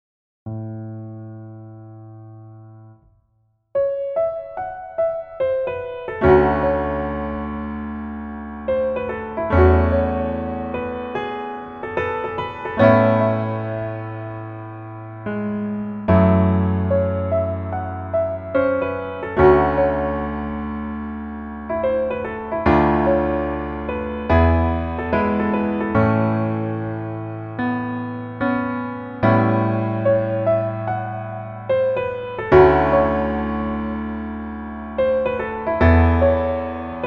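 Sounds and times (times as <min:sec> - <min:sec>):
piano melody backing track: 0:00.5 - 0:03.2, 0:03.8 - 0:37.0.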